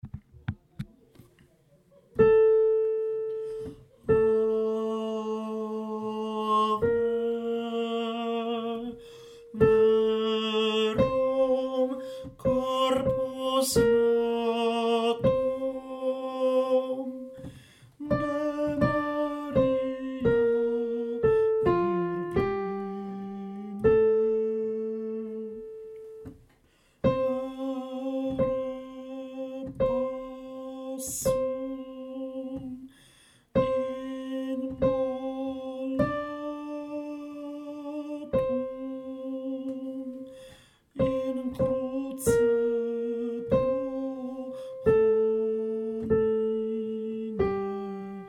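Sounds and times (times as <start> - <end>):
tenor singing: 2.2 - 26.4, 27.0 - 48.2.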